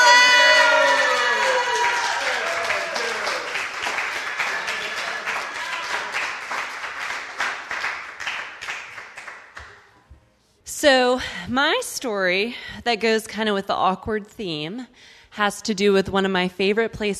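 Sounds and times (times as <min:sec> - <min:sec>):
audience applause: 0:00.0 - 0:09.8
speech: 0:10.9 - 0:17.1.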